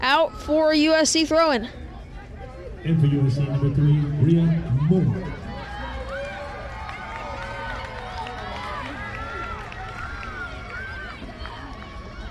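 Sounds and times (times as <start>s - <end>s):
speech: 0.0s - 1.8s, 2.8s - 5.4s
stadium crowd shouting and cheering at a soccer match: 2.0s - 12.2s.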